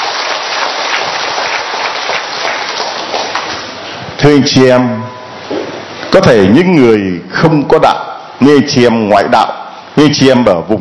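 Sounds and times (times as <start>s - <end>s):
audience applause: 0.0s - 3.8s
speech: 4.2s - 5.0s, 6.1s - 10.7s.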